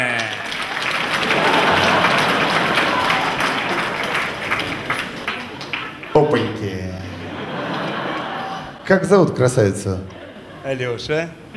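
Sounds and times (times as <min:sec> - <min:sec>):
audience applause: 0:00.0 - 0:08.8
laughter: 0:00.3 - 0:11.5
speech: 0:08.9 - 0:11.4.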